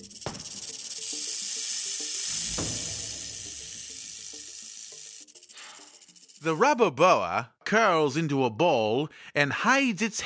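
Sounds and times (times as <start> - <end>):
rattlesnake hissing loudly: 0.0 - 6.7
speech: 6.4 - 10.2.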